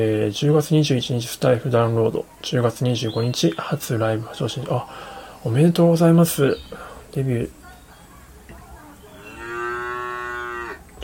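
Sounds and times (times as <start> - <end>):
speech: 0.0 - 7.6
cow mooing: 9.2 - 10.8.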